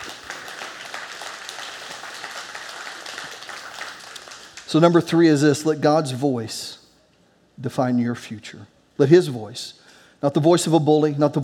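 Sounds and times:
crowd clapping: 0:00.0 - 0:04.9
speech: 0:04.7 - 0:06.8, 0:07.6 - 0:11.4.

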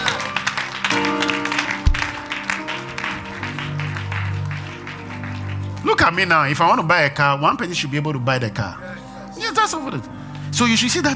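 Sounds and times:
audience clapping hands: 0:00.0 - 0:06.6
speech: 0:06.0 - 0:09.0, 0:09.6 - 0:11.1.

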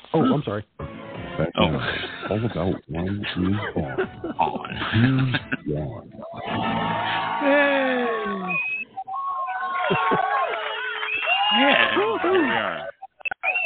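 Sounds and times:
speech: 0:00.2 - 0:08.7, 0:11.5 - 0:12.9
laughter: 0:01.6 - 0:08.6, 0:09.6 - 0:13.1
crowd screaming: 0:06.3 - 0:13.6.

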